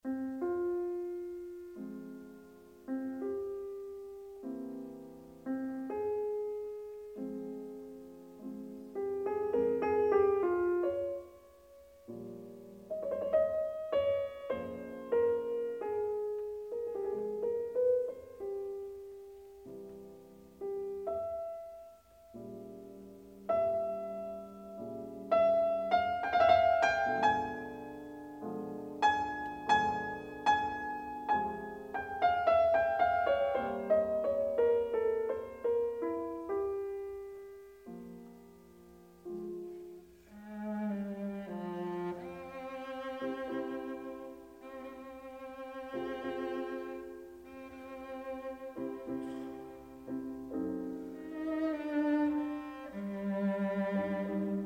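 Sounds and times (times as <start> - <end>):
cello: 0.0 - 54.6
piano: 0.0 - 54.6.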